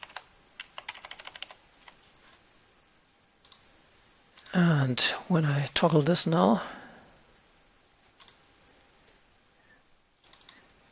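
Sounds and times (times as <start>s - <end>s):
typing on a computer keyboard: 0.0s - 2.0s, 10.2s - 10.6s
speech: 4.6s - 6.8s.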